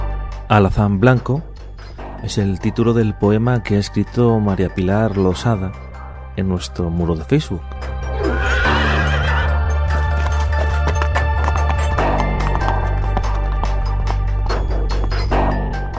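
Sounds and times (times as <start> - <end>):
speech: 0.5 - 1.5, 2.2 - 5.8, 6.4 - 7.7
horse whinnying: 8.0 - 11.0
galloping hooves: 8.8 - 15.6.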